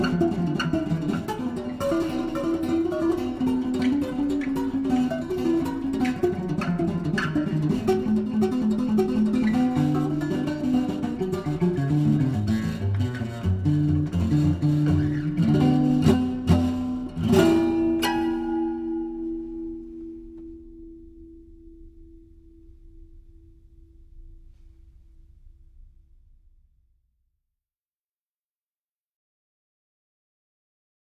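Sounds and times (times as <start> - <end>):
improvised music: 0.0 - 24.8.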